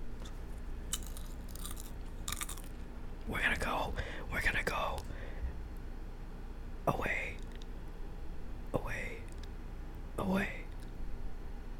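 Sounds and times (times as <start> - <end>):
low steady hum: 0.0 - 11.7
chewing crunchy popcorn: 0.1 - 2.9.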